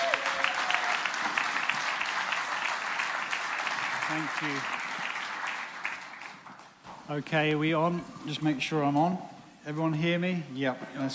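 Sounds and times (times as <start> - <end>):
audience applause: 0.0 - 6.8
speech: 4.1 - 4.8, 7.1 - 11.1.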